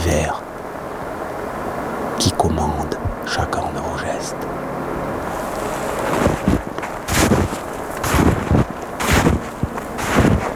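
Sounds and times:
constant windy hiss: 0:00.0 - 0:10.5
speech: 0:02.2 - 0:04.9
footsteps crunching in snow: 0:05.1 - 0:10.5.

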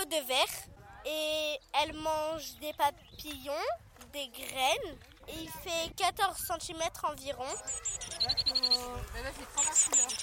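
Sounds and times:
speech: 0:00.1 - 0:10.2
European greenfinch calling: 0:07.5 - 0:10.2.

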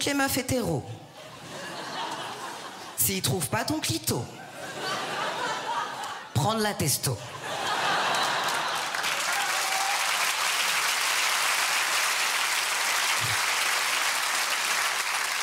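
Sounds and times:
speech: 0:00.0 - 0:01.0, 0:03.1 - 0:04.4, 0:06.4 - 0:07.4
laughter: 0:01.1 - 0:03.0, 0:04.3 - 0:06.4, 0:07.2 - 0:09.9
live audience applause: 0:07.7 - 0:15.4.

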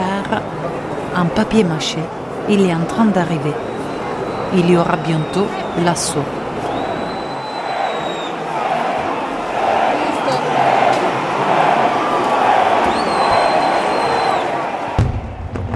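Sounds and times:
crowd murmuring in a town square at night: 0:00.0 - 0:15.4
speech: 0:00.3 - 0:00.6, 0:01.2 - 0:03.7, 0:04.5 - 0:06.4
thin high whistling tones: 0:03.6 - 0:08.4, 0:12.8 - 0:14.6.

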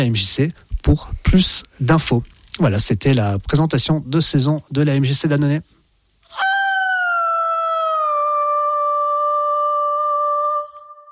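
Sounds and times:
speech: 0:00.0 - 0:05.8
wolf howling: 0:06.3 - 0:10.7.

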